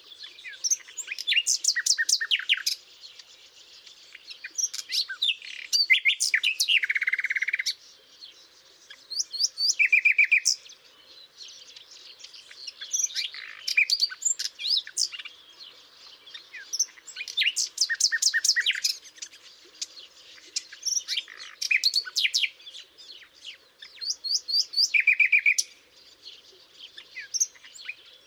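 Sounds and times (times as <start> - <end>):
common nightingale Luscinia megarhynchos song: 0.0 - 28.2.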